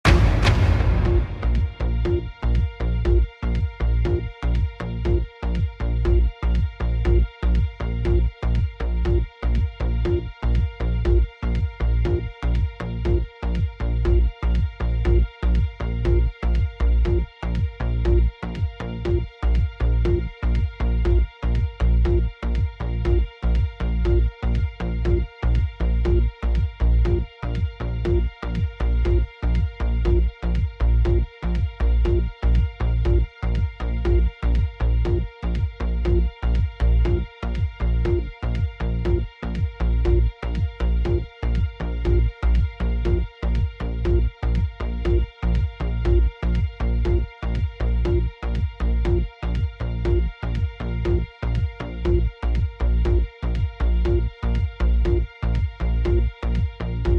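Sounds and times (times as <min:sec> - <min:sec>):
news headline music bed: 0:00.0 - 0:57.1
thunderclap: 0:00.1 - 0:02.3.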